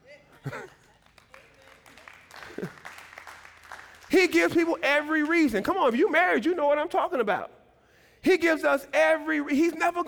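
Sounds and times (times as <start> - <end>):
audience clapping: 0.5 - 5.7
speech: 2.6 - 2.8, 4.2 - 7.6, 8.2 - 10.0.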